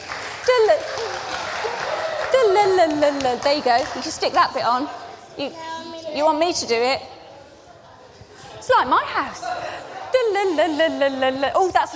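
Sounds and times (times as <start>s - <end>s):
people cheering: 0.7s - 4.1s
speech: 2.9s - 7.1s, 8.7s - 9.7s, 10.3s - 11.9s.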